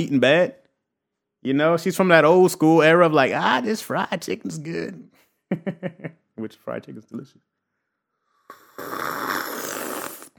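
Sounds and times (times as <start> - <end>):
speech: 0.0 - 0.6, 1.4 - 7.5
loud slurp: 8.5 - 10.3.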